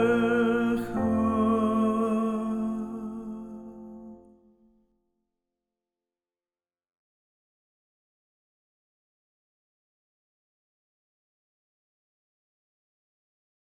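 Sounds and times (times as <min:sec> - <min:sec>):
solo singing: 0:00.0 - 0:04.3.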